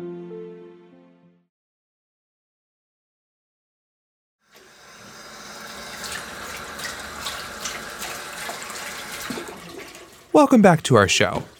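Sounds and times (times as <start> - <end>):
running tap water: 4.5 - 11.5
dishes being washed: 4.6 - 10.4, 11.1 - 11.5
speech: 10.4 - 11.5.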